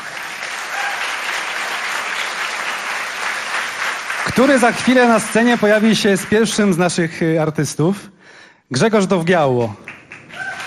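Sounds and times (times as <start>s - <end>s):
audience applause: 0.0s - 6.9s, 9.8s - 10.6s
speech: 4.2s - 8.1s, 8.7s - 9.8s.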